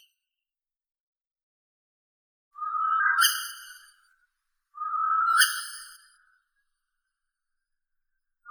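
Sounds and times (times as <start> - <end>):
northern hawk owl Surnia ulula calling: 2.6 - 3.8, 4.8 - 6.1.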